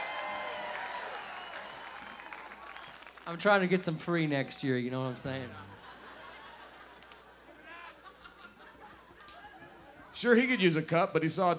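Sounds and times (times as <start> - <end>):
faint audience clapping for a popcorn stand: 0.0 - 5.6, 6.7 - 7.9
speech: 3.3 - 5.7, 10.2 - 11.5
laughter: 4.5 - 10.9.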